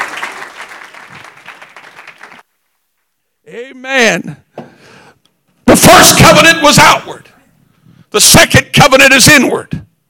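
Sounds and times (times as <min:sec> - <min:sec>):
audience clapping hands: 0:00.0 - 0:02.5
speech: 0:03.5 - 0:04.5, 0:05.8 - 0:07.3, 0:08.1 - 0:09.9.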